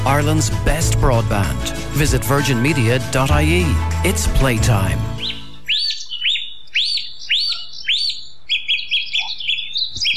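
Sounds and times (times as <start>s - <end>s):
speech: 0.1s - 5.2s
bird repeating whistled phrases in woodland dawn chorus: 5.2s - 10.1s.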